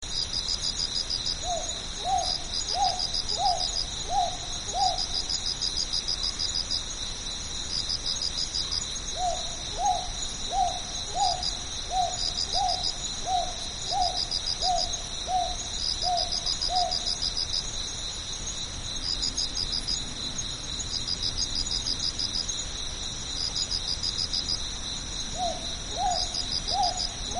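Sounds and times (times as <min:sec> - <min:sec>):
cricket chorus trilling: 0:00.0 - 0:27.3
Northern boobook hooting: 0:09.2 - 0:17.1, 0:25.4 - 0:27.3.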